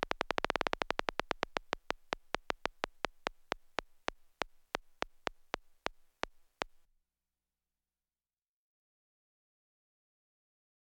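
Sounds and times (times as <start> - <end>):
geiger counter ticking: 0.0 - 6.8.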